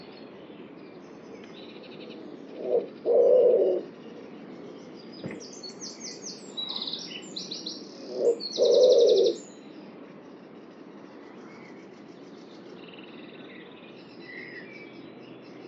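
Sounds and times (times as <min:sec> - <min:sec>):
faint background hiss: 0:00.0 - 0:15.6
low hoarse bird calls: 0:01.4 - 0:04.3, 0:08.0 - 0:09.4.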